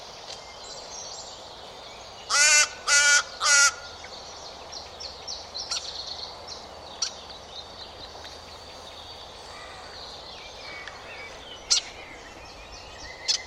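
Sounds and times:
harsh buzzy bird caws: 2.3 - 4.0, 9.5 - 10.0.

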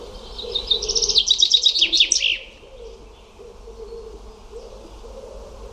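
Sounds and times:
bird song of quick repeated high chirping notes: 0.3 - 2.5.

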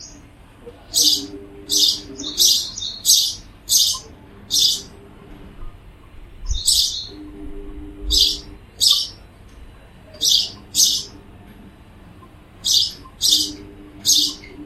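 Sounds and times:
harsh hissy high-pitched bird chirps: 0.0 - 0.2, 0.9 - 5.0, 6.5 - 7.3, 8.1 - 9.2, 10.2 - 11.2, 12.6 - 14.6.

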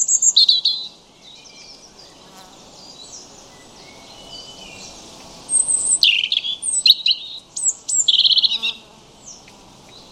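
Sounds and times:
European robin song: 0.0 - 10.1.

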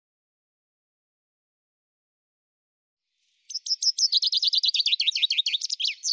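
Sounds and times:
common chaffinch song: 3.2 - 6.1.

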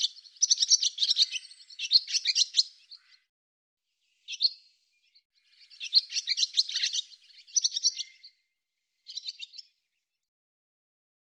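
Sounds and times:
barn swallow twittering: 0.0 - 3.2, 4.2 - 4.6, 5.4 - 8.4, 9.0 - 9.8.

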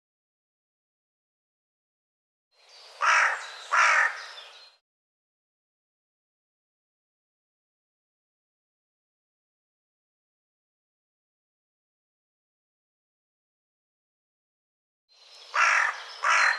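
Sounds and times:
bird harsh cawing calls: 2.9 - 4.8, 15.3 - 16.5.

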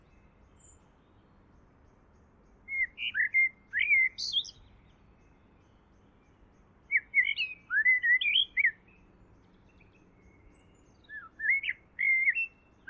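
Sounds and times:
bird song with warbled notes: 0.0 - 12.8.

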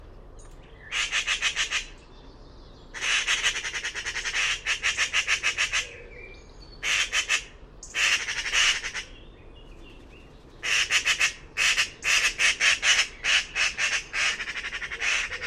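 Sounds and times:
bird squawking: 0.8 - 2.0, 3.0 - 6.0, 6.8 - 9.2, 10.6 - 15.4.

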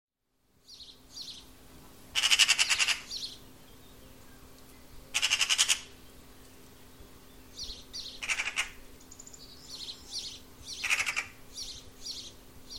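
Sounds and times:
bird calls in rapid pulsed chattering bursts: 2.2 - 3.4, 5.1 - 6.0, 8.0 - 9.2, 10.7 - 11.8.

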